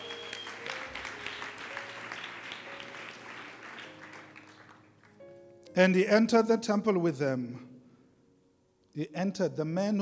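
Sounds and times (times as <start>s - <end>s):
audience clapping hands: 0.0s - 5.2s
speech: 5.8s - 7.7s, 9.0s - 9.9s.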